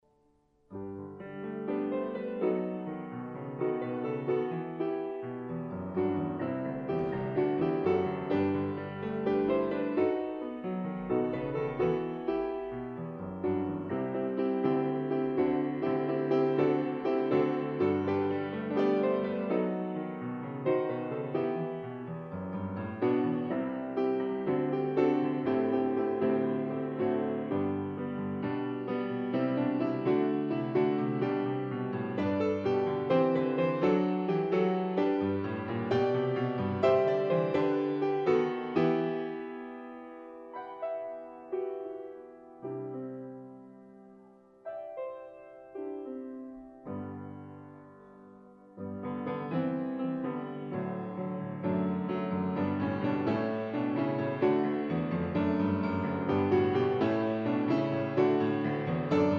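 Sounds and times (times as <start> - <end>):
grand piano: 0.0 - 59.3.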